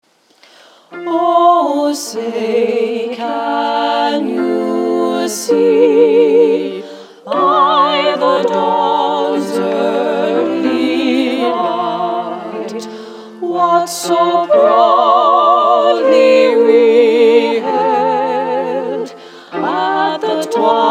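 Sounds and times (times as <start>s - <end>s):
a cappella national anthem singing: 0.9s - 20.8s.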